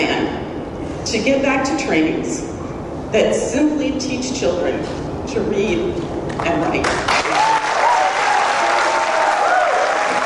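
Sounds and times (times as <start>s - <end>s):
speech: 1.1s - 7.5s
crowd cheering: 7.1s - 10.2s.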